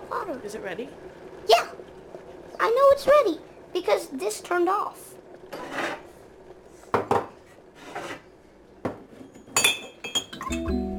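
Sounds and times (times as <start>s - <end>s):
speech: 0.1s - 6.0s
dishes and a cup clinking: 8.8s - 10.8s
ceramic rattling against a hard surface: 9.6s - 10.7s.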